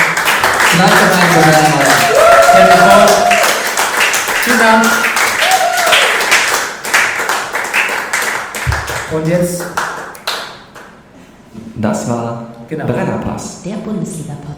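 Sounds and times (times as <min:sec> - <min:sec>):
audience applause: 0:00.0 - 0:10.5
speech: 0:00.8 - 0:02.0, 0:04.5 - 0:05.1, 0:09.1 - 0:09.8, 0:11.8 - 0:14.5.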